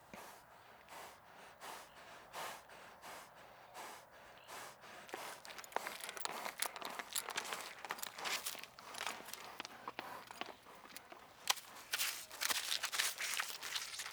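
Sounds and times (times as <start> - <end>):
horse trotting: 0.2 - 14.1
stirrups jingling: 5.1 - 14.1.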